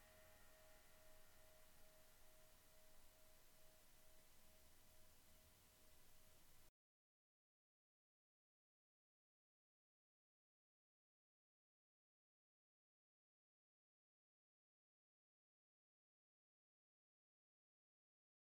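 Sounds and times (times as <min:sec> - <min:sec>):
thin 17 crash cymbal: 0:00.0 - 0:06.7.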